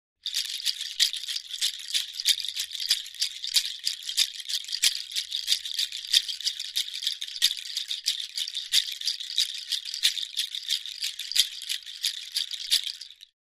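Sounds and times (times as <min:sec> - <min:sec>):
Natu shaker bracelet percussion shaker: 0:00.2 - 0:13.3.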